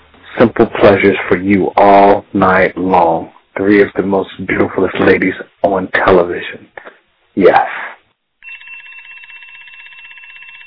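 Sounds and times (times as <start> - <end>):
speech: 0.4 - 7.9
alarm clock ringing: 8.4 - 10.6.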